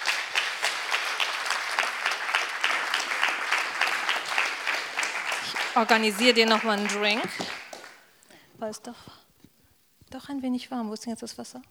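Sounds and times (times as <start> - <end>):
audience applause: 0.0 - 8.0
speech: 5.8 - 7.4, 8.6 - 9.2, 10.1 - 11.6.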